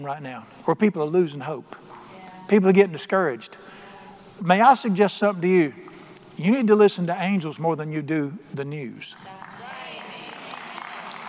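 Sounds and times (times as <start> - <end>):
speech: 0.0 - 1.9, 2.5 - 3.7, 4.4 - 9.6
audience clapping: 9.2 - 11.2.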